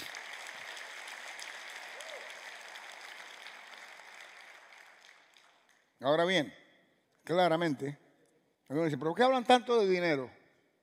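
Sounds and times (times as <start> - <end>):
audience applause: 0.0 - 5.7
speech: 6.0 - 6.6, 7.3 - 8.0, 8.7 - 10.4.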